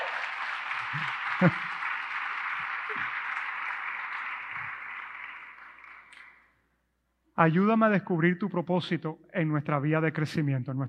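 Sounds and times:
audience applause: 0.0s - 6.4s
speech: 0.9s - 1.6s, 7.4s - 10.8s.

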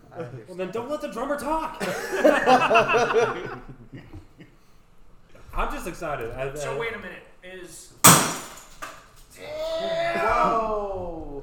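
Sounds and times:
speech: 0.2s - 4.2s, 5.6s - 8.4s
laughter: 1.8s - 4.6s, 9.8s - 10.8s
glass breaking: 8.0s - 9.1s.

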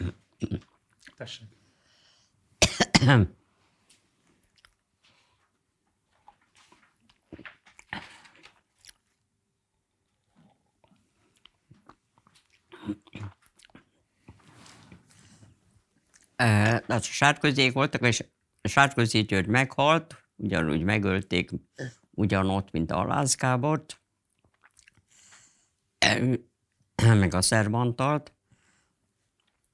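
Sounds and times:
person drinking water: 0.0s - 1.2s, 6.1s - 9.2s, 10.1s - 14.4s, 24.4s - 25.6s
speech: 1.2s - 1.5s, 3.0s - 3.4s, 16.4s - 24.0s, 26.0s - 28.4s.

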